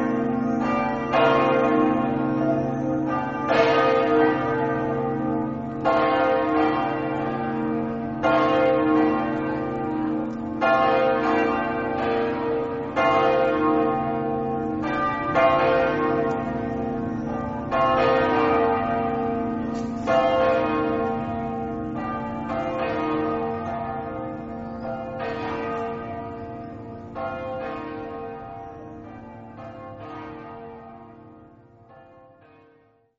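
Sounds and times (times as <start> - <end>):
church bells in Codroipo: 0.0 - 33.1.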